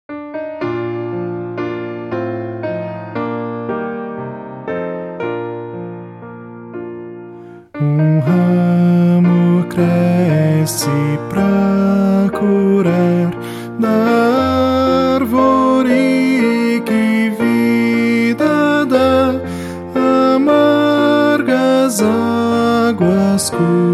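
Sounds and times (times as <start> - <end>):
piano: 0.0 - 23.9
person singing: 7.7 - 23.9.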